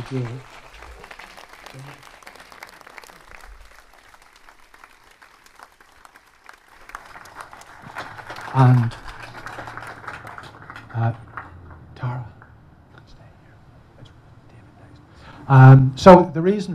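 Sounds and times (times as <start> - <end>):
speech: 0.0 - 0.6, 1.7 - 2.1, 8.5 - 9.0, 11.0 - 11.2, 15.5 - 16.7
audience applause: 0.0 - 12.5.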